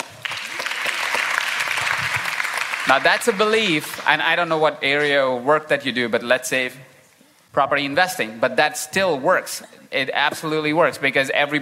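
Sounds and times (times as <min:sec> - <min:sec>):
audience applause: 0:00.0 - 0:03.6
speech: 0:02.9 - 0:06.9, 0:07.6 - 0:11.6.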